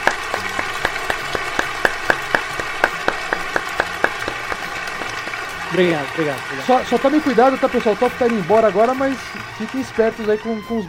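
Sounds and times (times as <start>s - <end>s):
audience applause: 0.0s - 10.8s
speech: 5.7s - 10.8s.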